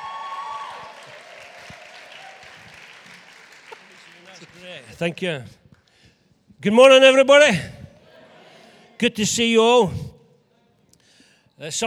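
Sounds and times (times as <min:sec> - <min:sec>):
audience applause welcoming a pastor to the stage: 0:00.0 - 0:04.9
speech: 0:04.6 - 0:05.6, 0:06.6 - 0:07.7, 0:09.0 - 0:10.1, 0:11.6 - 0:11.8.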